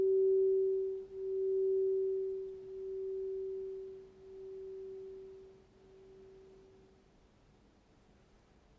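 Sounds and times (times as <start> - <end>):
bowl: 0.0 - 6.9.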